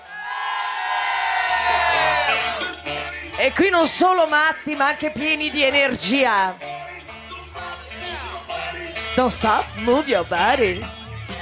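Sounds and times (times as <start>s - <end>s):
group shouting together on count: 0.0s - 2.9s
speech: 3.4s - 6.7s, 9.2s - 11.0s.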